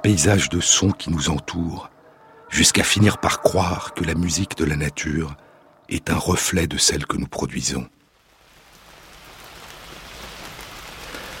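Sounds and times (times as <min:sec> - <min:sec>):
speech: 0:00.0 - 0:01.9, 0:02.5 - 0:08.0
steady rain drumming on a surface: 0:08.0 - 0:11.3.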